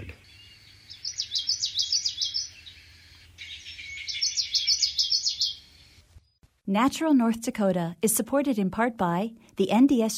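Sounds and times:
common yellowthroat song: 0:00.0 - 0:06.3
speech: 0:06.7 - 0:10.1.

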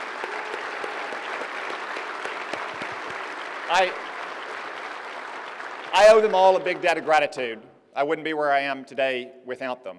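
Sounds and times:
audience applause: 0:00.0 - 0:07.2
speech: 0:03.7 - 0:04.1, 0:06.0 - 0:09.9.

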